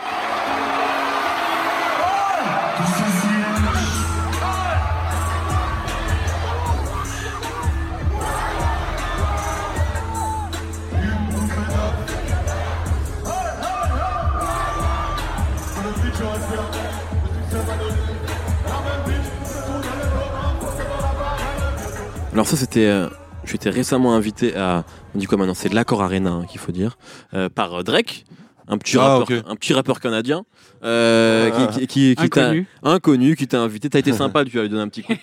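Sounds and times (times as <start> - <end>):
cheering crowd: 0.0 - 22.2
live concert recording: 0.0 - 23.8
laughter: 3.6 - 10.4, 34.0 - 35.2
speech: 22.5 - 35.2.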